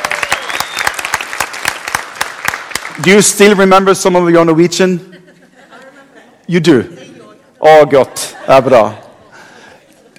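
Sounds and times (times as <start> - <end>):
crowd audience applause: 0.0 - 3.4
speech: 3.0 - 5.1, 6.5 - 9.0
laughter: 4.9 - 10.1.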